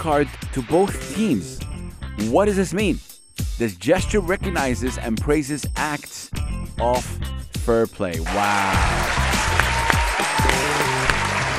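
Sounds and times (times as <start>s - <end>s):
speech: 0.0s - 1.6s, 2.2s - 9.2s
stadium fans cheering and applauding: 8.2s - 11.5s.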